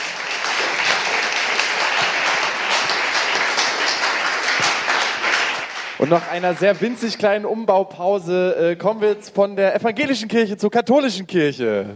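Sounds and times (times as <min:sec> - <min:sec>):
audience applause: 0:00.0 - 0:07.2
speech: 0:06.0 - 0:11.9.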